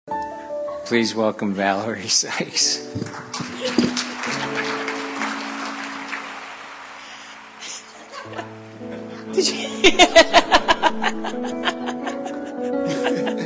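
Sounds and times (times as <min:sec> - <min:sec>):
speech: 0:00.9 - 0:04.6, 0:09.4 - 0:11.9
applause: 0:03.0 - 0:08.5
laughter: 0:03.3 - 0:06.3, 0:07.6 - 0:13.4.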